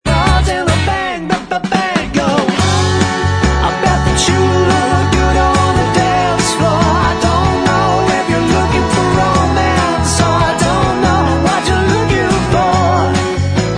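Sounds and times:
backing vocals: 0.1s - 13.6s.

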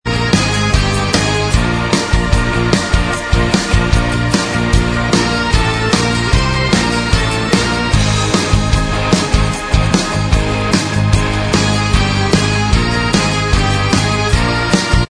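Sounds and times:
instrumental music: 0.1s - 15.0s.

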